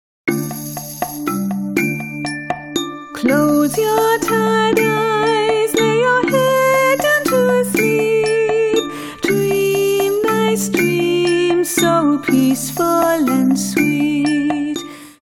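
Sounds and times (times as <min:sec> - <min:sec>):
dream song: 0:00.3 - 0:15.0.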